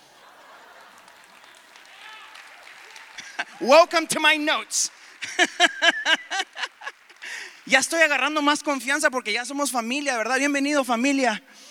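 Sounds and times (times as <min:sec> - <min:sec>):
laughter: 0:00.0 - 0:01.9, 0:02.8 - 0:03.7, 0:05.0 - 0:07.6
crowd applauding: 0:00.0 - 0:08.9
speech: 0:03.4 - 0:05.8, 0:07.7 - 0:11.6.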